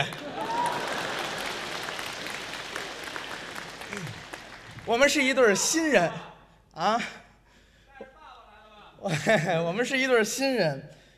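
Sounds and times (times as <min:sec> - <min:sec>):
audience applause: 0:00.0 - 0:05.5
speech: 0:04.9 - 0:07.2, 0:09.0 - 0:11.0.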